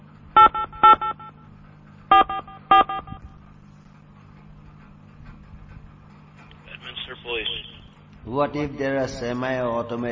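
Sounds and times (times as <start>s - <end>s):
telephone keypad tones: 0.4s - 1.4s, 2.1s - 3.4s
speech: 8.3s - 10.1s.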